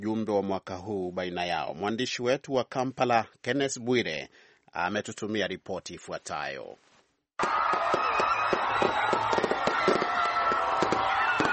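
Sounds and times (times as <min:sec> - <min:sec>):
speech: 0:00.0 - 0:08.1
fireworks crackling over Kampala at a New Year celebration: 0:07.4 - 0:11.5.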